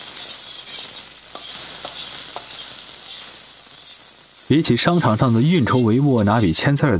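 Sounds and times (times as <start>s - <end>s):
food being stir-fried in a wok at the stove of an open kitchen: 0.0s - 6.9s
spatula scraping a wok: 0.1s - 4.1s, 5.2s - 6.4s
speech: 4.5s - 6.9s.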